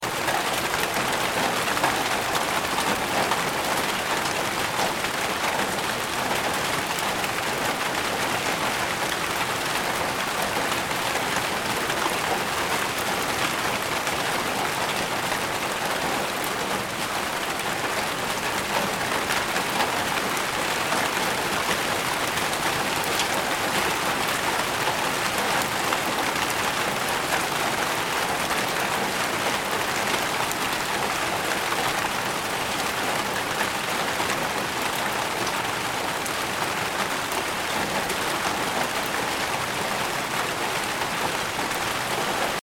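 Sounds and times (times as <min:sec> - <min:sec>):
rain pattering: 0:00.0 - 0:42.6.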